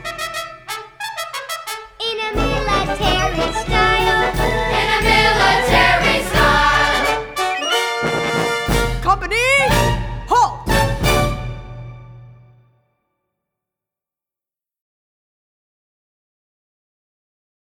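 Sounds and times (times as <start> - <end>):
march vocals: 0.0 - 1.0, 2.0 - 11.4.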